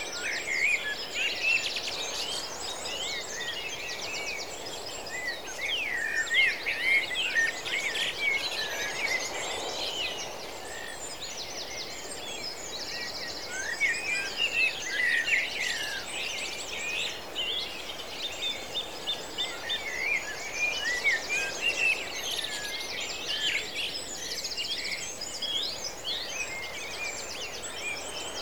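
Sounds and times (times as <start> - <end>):
dawn chorus of many birds at an East Coast nature reserve: 0.0 - 28.4.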